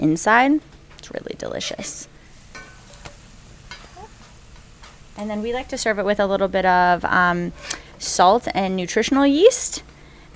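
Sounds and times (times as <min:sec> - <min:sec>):
speech: 0:00.0 - 0:02.1, 0:05.2 - 0:09.9
food sizzling as it fries in coconut oil: 0:02.2 - 0:07.7.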